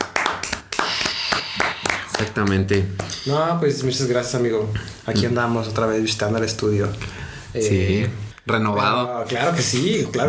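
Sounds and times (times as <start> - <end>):
studio team applauding: 0.0 - 3.1
speech: 2.3 - 10.2.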